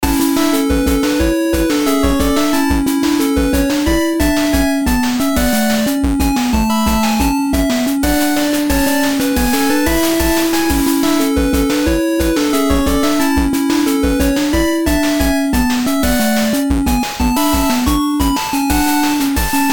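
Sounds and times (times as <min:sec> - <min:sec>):
8-bit music: 0:00.0 - 0:19.7.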